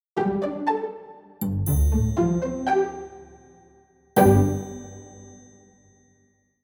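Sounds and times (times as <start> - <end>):
jingle: 1.4 - 6.3.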